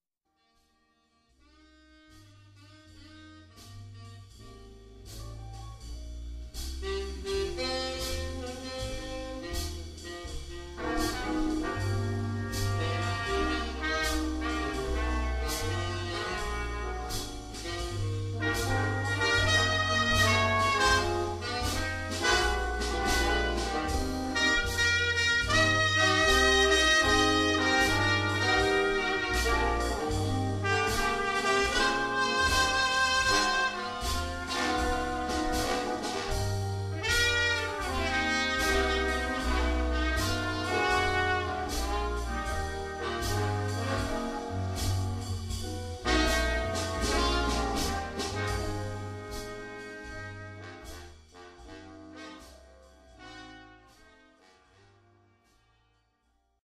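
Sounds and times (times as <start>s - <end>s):
swing jazz combo playing: 1.4s - 55.6s.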